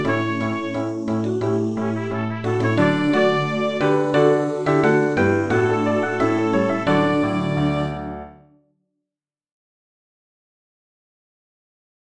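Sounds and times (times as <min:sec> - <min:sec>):
trumpet: 0:00.0 - 0:08.6
piano: 0:00.0 - 0:08.7.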